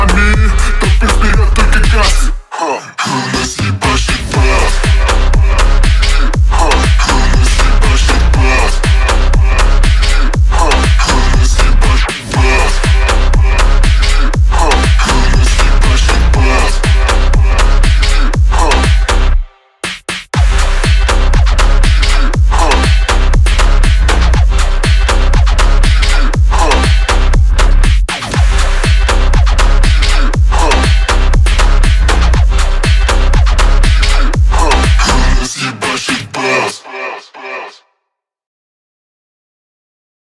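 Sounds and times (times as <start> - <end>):
Brazilian phonk remix: 0.0 - 37.8.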